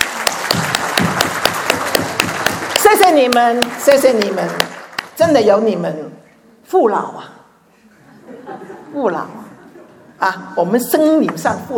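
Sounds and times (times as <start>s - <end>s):
audience applause: 0.0s - 5.2s
speech: 3.0s - 7.4s, 8.9s - 9.4s, 10.2s - 11.7s
laughter: 7.9s - 10.2s.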